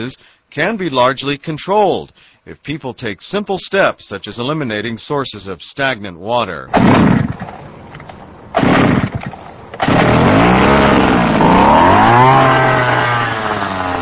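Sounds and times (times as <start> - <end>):
speech: 0.0 - 7.3
powerful insecticide sprayer machine engine sputtering and roaring: 9.8 - 14.0.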